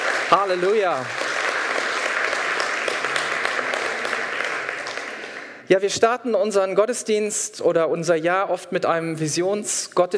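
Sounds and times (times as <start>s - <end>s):
audience applause: 0.0s - 5.7s
speech: 0.3s - 1.2s, 5.7s - 10.1s.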